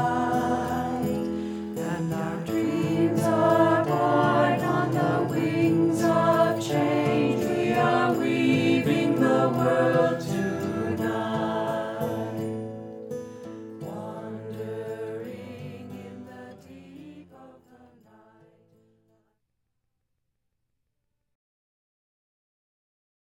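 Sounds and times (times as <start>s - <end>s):
chanting: 0.0s - 12.9s, 13.8s - 18.8s.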